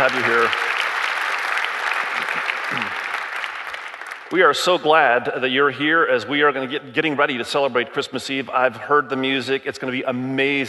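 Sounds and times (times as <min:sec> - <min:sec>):
speech: 0:00.0 - 0:00.7, 0:04.3 - 0:10.6
audience applause: 0:00.0 - 0:04.5.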